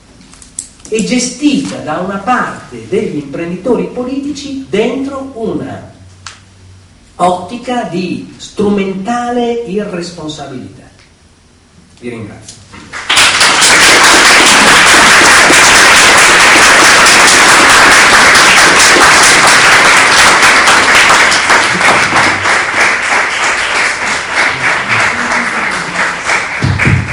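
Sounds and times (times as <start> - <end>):
speech: 0.9 - 5.9, 7.2 - 10.8, 12.0 - 13.0
audience applauding: 12.8 - 27.1.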